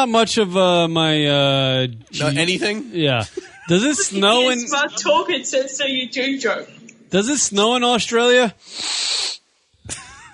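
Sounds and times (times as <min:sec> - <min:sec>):
speech: 0:00.0 - 0:10.0
laughter: 0:02.2 - 0:05.4, 0:09.9 - 0:10.3
nose sniffling: 0:08.6 - 0:09.5.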